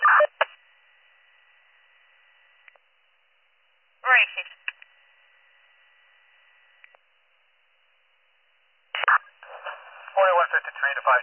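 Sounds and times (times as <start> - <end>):
radio dispatch cancel tones: 0.0 - 0.5, 9.0 - 11.2
faint radio hiss: 0.0 - 11.2
speech: 10.9 - 11.2.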